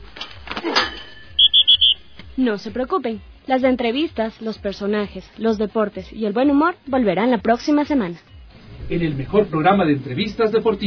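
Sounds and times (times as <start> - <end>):
final whistle blow: 1.2 - 2.3
speech: 2.4 - 8.3, 8.9 - 10.8.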